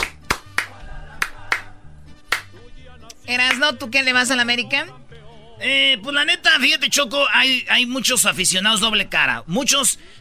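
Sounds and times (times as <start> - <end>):
sharp claps: 0.0 - 1.7, 2.3 - 2.6
speech: 3.3 - 5.0, 5.6 - 10.1.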